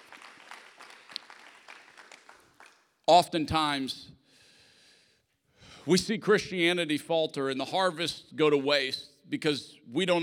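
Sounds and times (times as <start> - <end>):
audience clapping: 0.0 - 2.9
speech: 3.1 - 4.2, 5.8 - 10.2.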